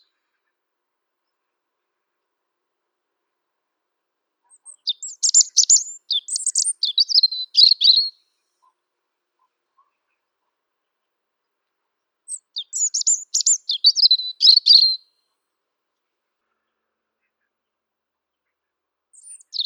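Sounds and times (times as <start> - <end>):
Erithacus rubecula: 4.5 - 8.1, 12.3 - 15.0, 19.2 - 19.6.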